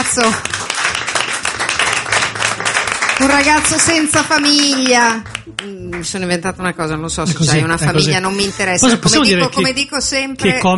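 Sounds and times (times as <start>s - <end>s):
audience applause: 0.0s - 6.1s
speech: 0.2s - 0.6s, 3.2s - 10.7s.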